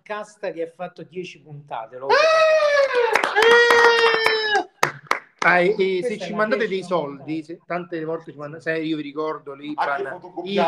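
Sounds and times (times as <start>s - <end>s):
speech: 0.1s - 4.5s, 5.4s - 10.6s
hands clapping: 2.8s - 5.9s.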